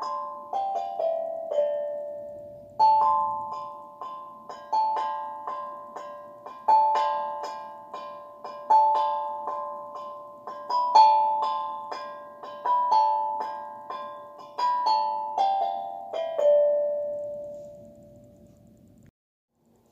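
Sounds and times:
steel tongue drum melody: 0.0s - 18.6s.

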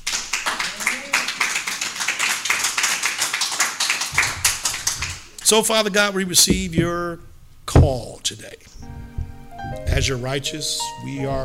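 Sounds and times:
crowd clapping: 0.0s - 5.6s
speech: 5.5s - 8.9s, 9.8s - 11.4s.

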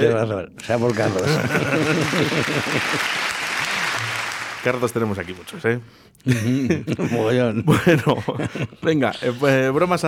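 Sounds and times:
speech: 0.0s - 3.4s, 4.6s - 10.0s
applause: 0.7s - 5.6s
laughter: 0.9s - 3.9s, 6.3s - 8.8s.

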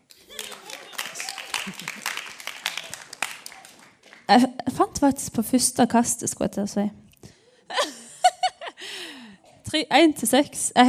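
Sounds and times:
audience clapping: 0.0s - 4.5s
laughter: 0.2s - 3.1s, 7.7s - 8.8s
speech: 1.7s - 2.2s, 4.3s - 7.0s, 9.8s - 10.8s.

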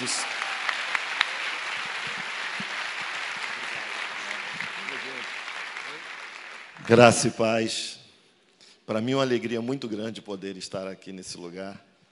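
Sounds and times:
crowd applauding: 0.0s - 7.3s
speech: 6.9s - 8.0s, 8.9s - 11.9s.

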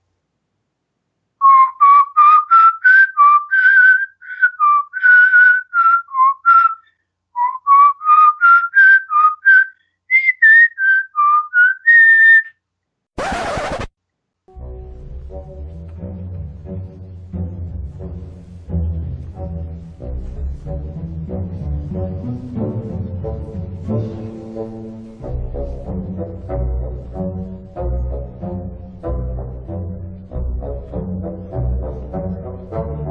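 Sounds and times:
person whistling a lively melody: 1.4s - 12.5s
sharp burst of noise: 13.2s - 13.9s
instrumental music: 14.5s - 33.0s.

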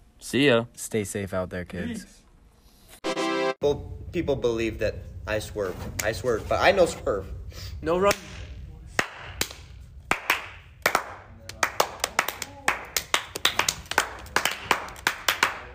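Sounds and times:
speech: 0.2s - 2.2s, 3.6s - 8.3s
round of applause: 10.1s - 15.7s.

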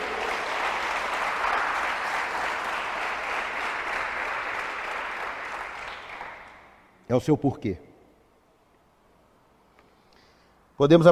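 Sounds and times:
audience applause: 0.0s - 6.8s
speech: 7.1s - 7.9s, 10.8s - 11.1s.

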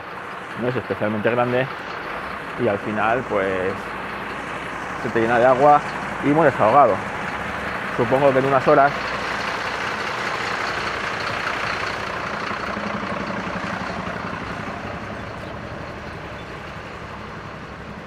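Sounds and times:
truck passing by: 0.0s - 18.0s
speech: 0.6s - 2.0s, 2.6s - 4.0s, 5.0s - 7.1s, 8.0s - 9.1s.

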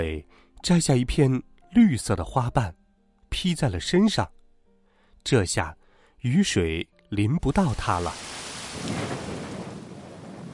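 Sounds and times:
speech: 0.0s - 4.4s, 5.2s - 9.0s
rolling thunder: 8.6s - 10.5s.

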